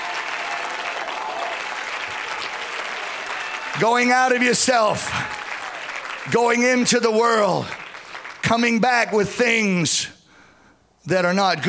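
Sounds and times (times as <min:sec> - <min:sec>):
audience clapping hands: 0:00.0 - 0:09.3
speech: 0:03.8 - 0:05.4, 0:06.3 - 0:07.8, 0:08.5 - 0:10.2, 0:11.1 - 0:11.6.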